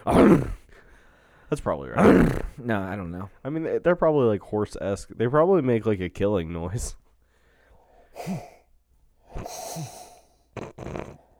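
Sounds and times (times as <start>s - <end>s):
voice imitating Darth Vader's breathing: 0.0s - 3.5s, 7.2s - 11.3s
speech: 0.1s - 0.6s, 1.5s - 7.0s, 8.2s - 8.5s, 9.3s - 10.0s.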